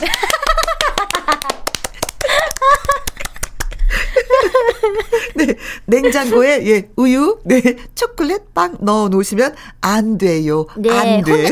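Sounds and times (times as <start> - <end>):
people laughing: 0.0 - 1.6, 2.2 - 6.6, 11.1 - 11.4
clapping: 0.0 - 3.7
speech: 5.9 - 11.4.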